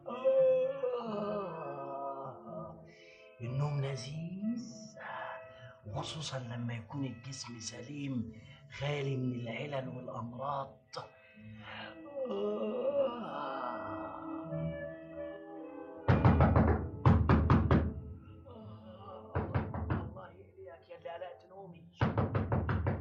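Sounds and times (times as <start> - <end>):
person moaning: 0.0 - 2.8, 11.6 - 14.7, 18.4 - 19.6
speech: 6.0 - 13.6
loud rapid knocking on a door: 16.1 - 18.0, 19.4 - 20.2, 22.0 - 22.9.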